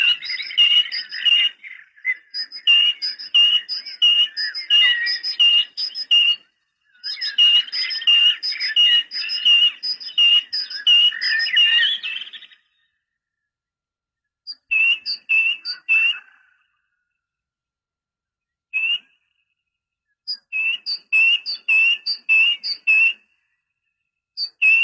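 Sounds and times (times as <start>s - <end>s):
bird chattering and twittering: 0.0s - 12.9s, 14.5s - 16.8s, 20.3s - 23.2s, 24.4s - 24.8s
great tit singing: 0.0s - 13.0s, 14.5s - 17.0s, 20.1s - 23.2s, 24.4s - 24.8s.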